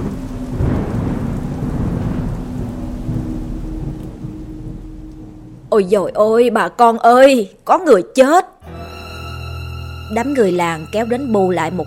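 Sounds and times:
thunder: 0.0 - 5.9
rain: 0.0 - 7.7, 8.6 - 11.8
speech: 5.7 - 8.5, 10.1 - 11.8.

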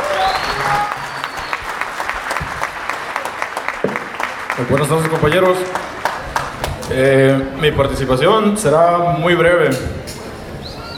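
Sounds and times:
audience applauding a speaker at a community gathering: 0.0 - 7.1
speech: 4.6 - 6.0, 6.9 - 10.0.

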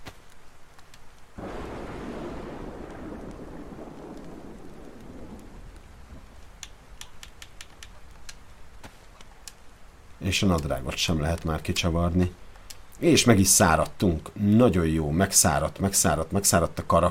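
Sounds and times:
rain in a video game: 0.0 - 17.0
speech: 10.3 - 12.4, 13.0 - 17.0.

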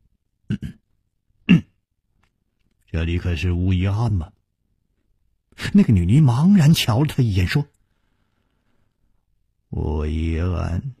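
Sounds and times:
storyteller's dry cough: 0.5 - 0.8, 1.5 - 1.8
storyteller's throat clearing: 0.5 - 0.8, 1.4 - 1.8
speech: 2.9 - 4.4, 5.6 - 7.7, 9.7 - 10.9.

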